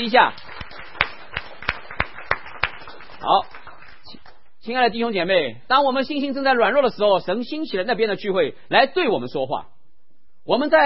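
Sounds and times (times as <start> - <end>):
speech: 0.0 - 0.5, 3.2 - 3.6, 4.6 - 9.8, 10.4 - 10.8
church congregation clapping in unison: 0.0 - 4.5.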